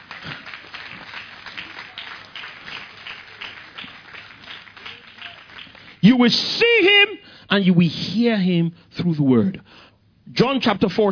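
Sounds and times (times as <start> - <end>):
audience clapping: 0.0 - 6.2
speech: 6.0 - 11.1.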